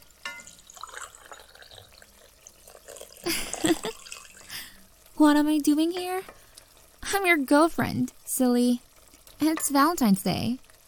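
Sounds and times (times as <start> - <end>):
coffee pouring into a cup: 0.4 - 4.5
speech: 3.3 - 3.9, 5.2 - 6.4, 7.1 - 10.6.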